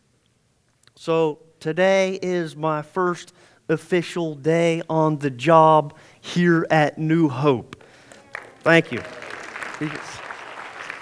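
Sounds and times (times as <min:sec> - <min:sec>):
speech: 0:01.0 - 0:07.8, 0:08.6 - 0:09.2, 0:09.8 - 0:10.1
audience clapping: 0:07.8 - 0:11.0.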